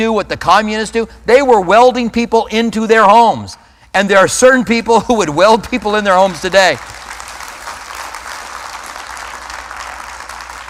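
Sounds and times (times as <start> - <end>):
speech: 0.0 - 7.0
audience applause: 6.8 - 10.6.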